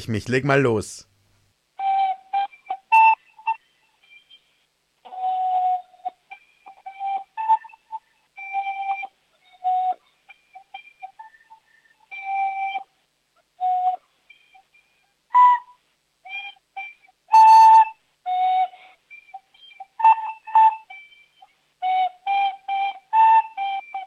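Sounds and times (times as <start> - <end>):
speech: 0.0 - 1.1
child playing a recorder flute: 1.8 - 12.9, 13.6 - 24.0.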